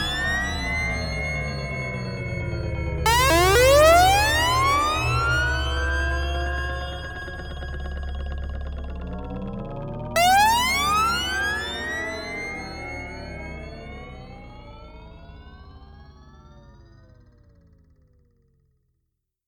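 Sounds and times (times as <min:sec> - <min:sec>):
Vermona Mono Lancet analog synthesizer VCO with envelope: 0:00.0 - 0:15.3.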